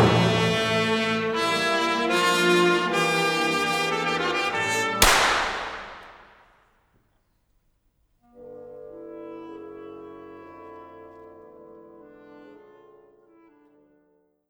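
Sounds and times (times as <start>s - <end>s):
symphonic tango music: 0.0s - 5.2s, 8.4s - 14.2s.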